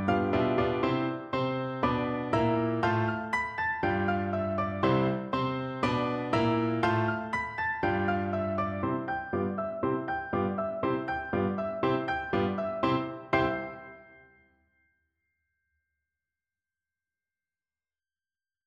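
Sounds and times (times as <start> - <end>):
piano duet: 0.0 - 14.4.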